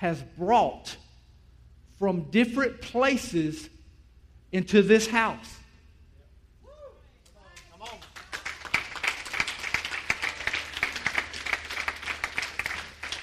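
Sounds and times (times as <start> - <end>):
speech: 0.0 - 1.0, 2.0 - 3.8, 4.5 - 5.6
audience clapping: 7.5 - 13.2.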